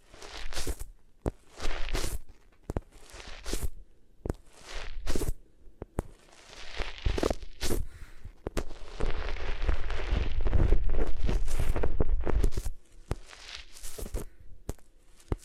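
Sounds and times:
rubbing and scraping against different materials: 0.0 - 5.4, 6.0 - 15.4.

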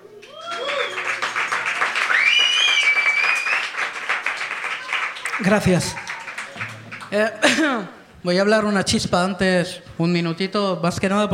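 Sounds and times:
applause: 0.2 - 7.6
speech: 5.4 - 6.1, 7.1 - 11.3.

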